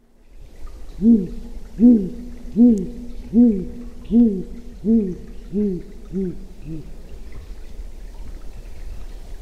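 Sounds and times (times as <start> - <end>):
great grey owl hooting call: 1.0 - 7.0.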